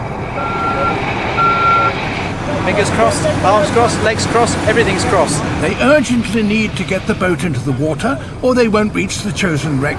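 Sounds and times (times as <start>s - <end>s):
crane truck diesel engine rumble: 0.0s - 9.9s
crane truck reversing alarm beeps: 0.4s - 2.0s
speech: 2.7s - 9.9s.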